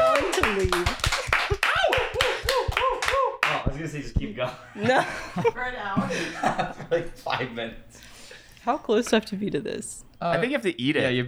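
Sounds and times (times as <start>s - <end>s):
laughter: 0.0s - 3.0s, 4.5s - 10.1s
crowd applause: 0.0s - 3.7s
speech: 4.0s - 11.2s.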